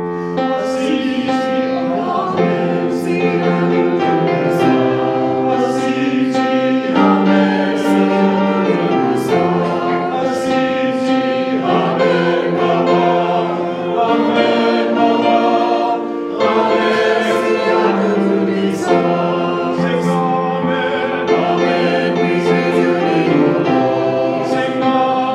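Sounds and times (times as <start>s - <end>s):
hymn: 0.1s - 25.3s.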